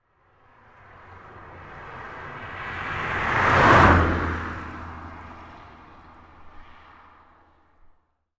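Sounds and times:
car passing by: 0.1 - 8.0.

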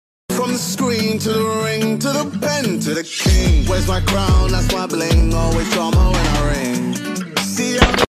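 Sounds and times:
song: 0.3 - 8.0.

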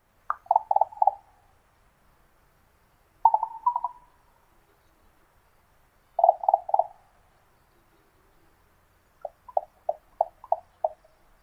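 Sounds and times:
raven popping call: 0.2 - 1.3, 3.2 - 4.2, 6.2 - 7.0, 9.2 - 11.2.

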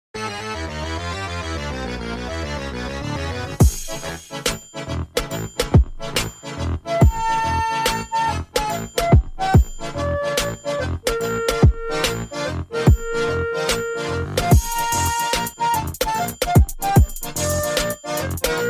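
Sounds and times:
trap beat: 3.6 - 18.6.

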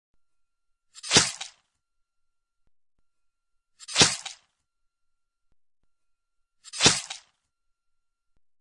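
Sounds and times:
stabbing: 1.0 - 1.6, 3.8 - 4.5, 6.7 - 7.4.

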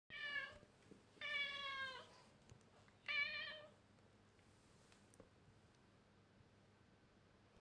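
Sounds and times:
cat meowing: 0.1 - 0.6, 1.2 - 2.1, 3.1 - 3.8.

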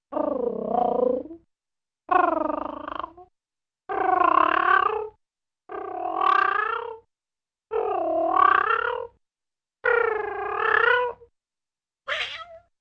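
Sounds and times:
purring: 0.1 - 1.4, 2.1 - 3.3, 3.9 - 7.1, 7.7 - 9.2, 9.8 - 11.3.

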